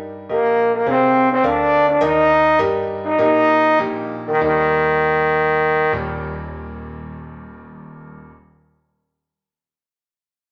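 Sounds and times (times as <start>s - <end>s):
trombone: 0.4s - 6.5s.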